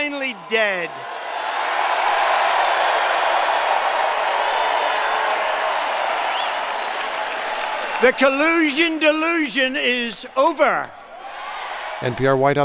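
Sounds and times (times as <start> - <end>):
speech: 0.0 - 1.2, 8.0 - 11.0, 12.0 - 12.6
large crowd cheering at a campaign rally: 0.0 - 12.6
whistles: 5.8 - 7.0.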